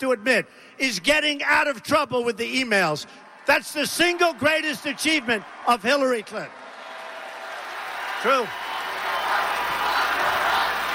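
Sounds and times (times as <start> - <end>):
speech: 0.0 - 6.7, 8.2 - 8.7
crowd chanting: 8.7 - 10.9.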